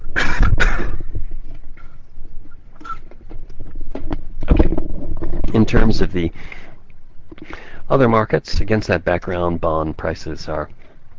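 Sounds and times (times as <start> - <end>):
cough: 0.2 - 1.1
speech: 5.7 - 6.6, 7.9 - 10.8.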